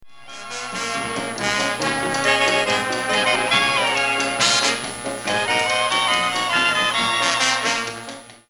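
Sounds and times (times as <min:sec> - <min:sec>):
instrumental music: 0:00.0 - 0:08.4.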